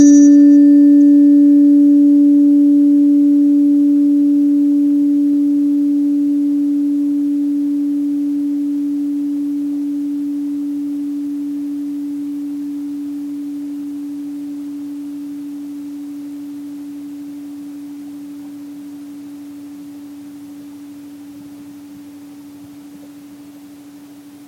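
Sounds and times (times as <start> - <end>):
tuning forks ringing: 0.0 - 17.2.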